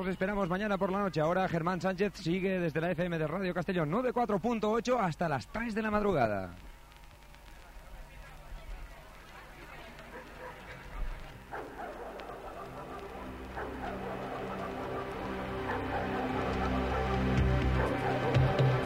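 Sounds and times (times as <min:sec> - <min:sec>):
speech: 0:00.0 - 0:06.7
dogs barking in a song: 0:09.6 - 0:18.8.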